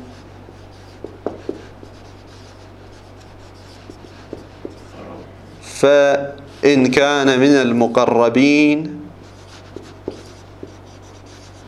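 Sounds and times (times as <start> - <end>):
handwriting scratching during an Arabic grammar lesson: 0.0 - 5.2, 9.2 - 11.6
pen tapping: 1.0 - 1.7, 3.9 - 4.8, 9.7 - 10.8
speech: 5.8 - 9.0.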